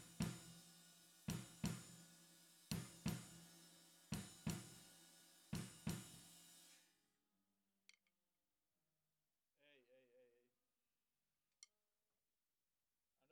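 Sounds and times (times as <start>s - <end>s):
snare drum: 0.0s - 6.8s.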